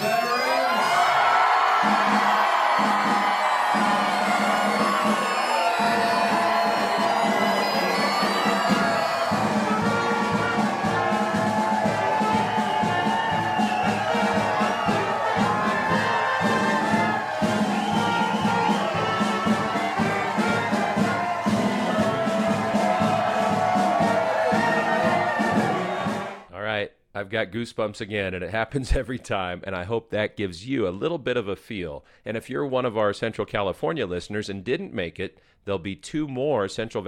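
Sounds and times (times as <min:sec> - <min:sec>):
crowd cheering to welcome veterans home: 0:00.0 - 0:26.5
speech: 0:27.4 - 0:37.0.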